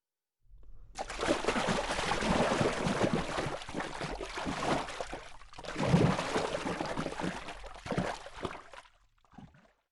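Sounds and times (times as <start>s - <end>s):
water being slapped hard and splashing: 1.0s - 8.9s.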